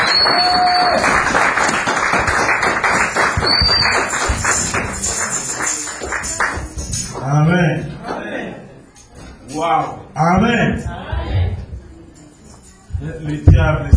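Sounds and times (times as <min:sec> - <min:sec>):
high whistles: 0:00.0 - 0:01.1, 0:03.4 - 0:04.4
church congregation cheering: 0:00.0 - 0:04.7
church congregation clapping: 0:00.0 - 0:07.0
speech: 0:09.4 - 0:11.6, 0:13.0 - 0:13.9.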